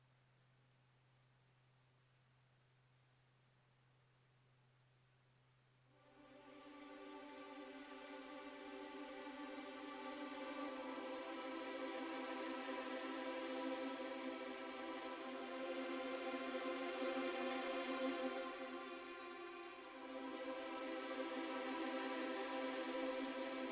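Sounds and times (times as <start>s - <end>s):
strings: 6.0s - 23.6s.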